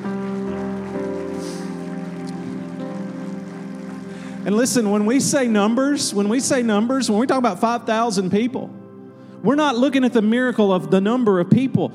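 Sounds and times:
audience clapping hands: 0:00.0 - 0:07.2
speech: 0:04.4 - 0:08.8, 0:09.4 - 0:11.9.

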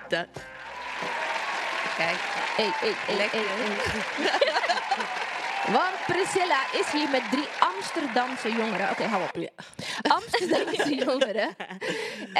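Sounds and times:
speech: 0:00.1 - 0:01.2, 0:02.0 - 0:12.3
applause: 0:00.5 - 0:09.4, 0:10.2 - 0:11.1
laughter: 0:01.0 - 0:09.3, 0:10.0 - 0:12.3.

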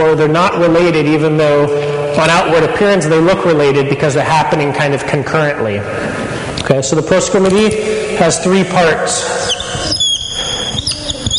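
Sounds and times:
speech: 0:00.0 - 0:10.0
pen squeaking on a board: 0:09.4 - 0:11.3.

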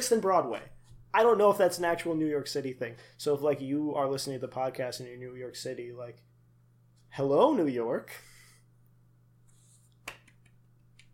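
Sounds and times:
speech: 0:00.0 - 0:06.3, 0:07.1 - 0:08.3
single pity clap: 0:10.0 - 0:11.1.

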